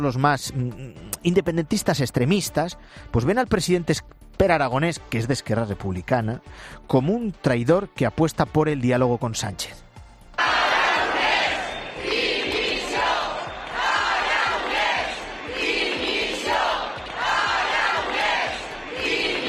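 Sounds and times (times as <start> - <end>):
speech: 0.0 - 9.8
crowd shouting for resignation: 10.4 - 19.4.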